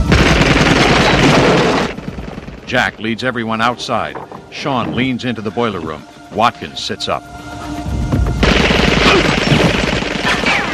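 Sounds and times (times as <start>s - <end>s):
automatic gunfire sprayed inside a basement boiler room: 0.1s - 2.3s, 8.4s - 10.7s
speech: 2.7s - 7.5s.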